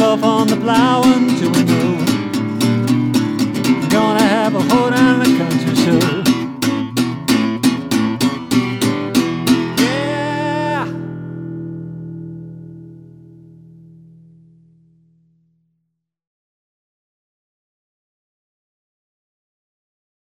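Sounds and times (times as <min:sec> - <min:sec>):
country music: 0:00.0 - 0:14.0.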